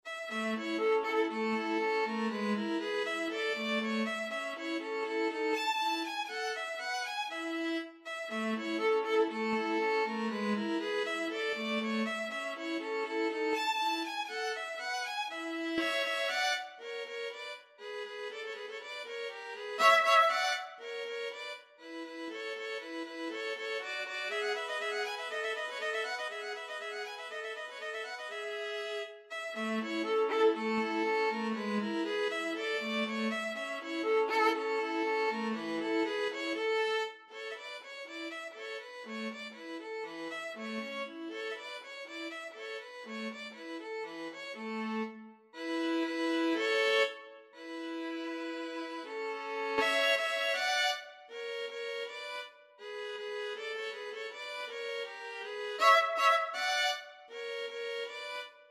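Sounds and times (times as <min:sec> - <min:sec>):
violin and viola duet: 0:00.0 - 0:58.6.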